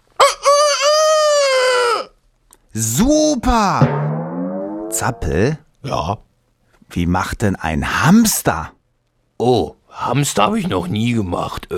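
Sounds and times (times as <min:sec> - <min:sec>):
rooster crowing: 0:00.2 - 0:02.1
speech: 0:02.8 - 0:04.1, 0:04.9 - 0:06.3, 0:06.9 - 0:08.8, 0:09.4 - 0:11.7.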